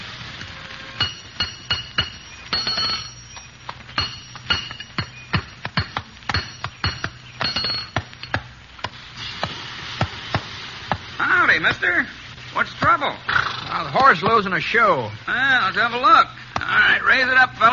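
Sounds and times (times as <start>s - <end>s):
low steady hum: 0.0s - 17.7s
hammering on metal in a blacksmith shop: 1.0s - 9.0s
speech: 11.6s - 17.7s.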